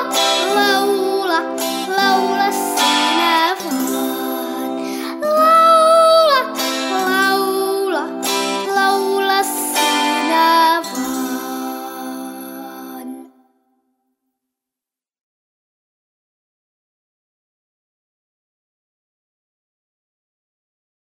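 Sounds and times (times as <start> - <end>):
song: 0.0 - 13.3.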